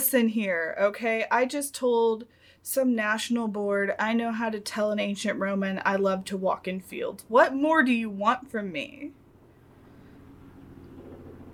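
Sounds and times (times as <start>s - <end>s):
speech: 0.1s - 9.2s
helicopter flying overhead: 8.9s - 11.5s.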